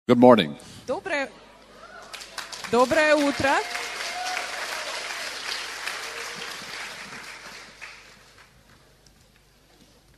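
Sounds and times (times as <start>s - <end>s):
speech: 0.1s - 1.4s, 2.7s - 3.8s
audience applause: 1.9s - 9.4s.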